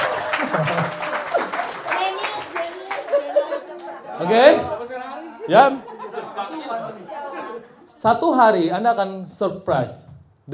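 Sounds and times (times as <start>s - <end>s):
laughter: 0.0s - 1.9s, 2.6s - 7.9s
audience applause: 0.0s - 4.0s
speech: 0.6s - 1.0s, 4.2s - 4.7s, 5.5s - 5.9s, 8.0s - 10.5s.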